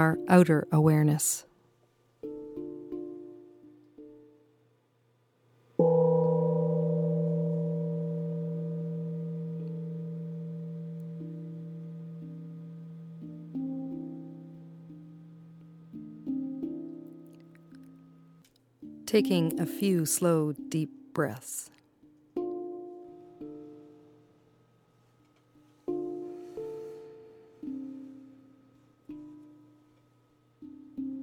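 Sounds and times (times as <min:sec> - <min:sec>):
speech: 0:00.0 - 0:01.5, 0:19.1 - 0:21.8
meditation gong ringing: 0:05.8 - 0:14.9.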